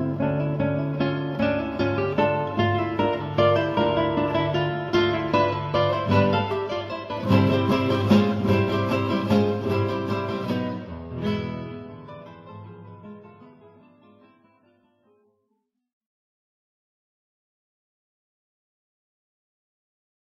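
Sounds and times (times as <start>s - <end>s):
four guitars playing: 0.0s - 15.2s.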